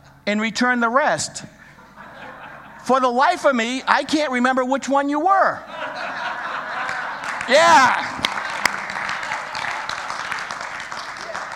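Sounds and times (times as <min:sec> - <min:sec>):
speech: 0:00.3 - 0:01.6, 0:02.8 - 0:05.7, 0:07.5 - 0:08.2
laughter: 0:01.6 - 0:04.3, 0:05.6 - 0:11.5
audience clapping, mostly men: 0:06.5 - 0:11.5.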